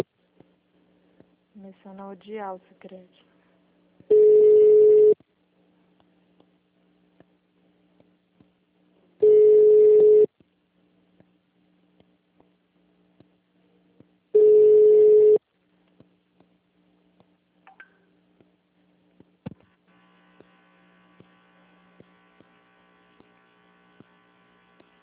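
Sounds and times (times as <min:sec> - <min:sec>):
speech: 0:01.6 - 0:03.3
ringback tone of a phone call ringing out unanswered: 0:04.1 - 0:05.2, 0:09.2 - 0:10.3, 0:14.4 - 0:15.4.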